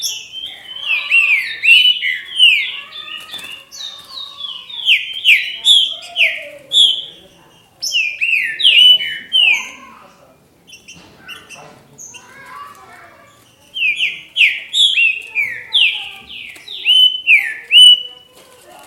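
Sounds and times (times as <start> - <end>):
green-winged saltator whistled song: 0.0 - 9.8, 13.8 - 18.3.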